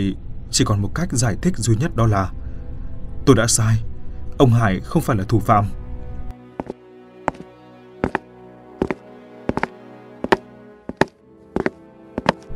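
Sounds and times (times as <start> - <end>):
speech: 0.0 - 2.4, 3.2 - 5.8
slow footsteps in slippers along a hallway: 6.6 - 12.5.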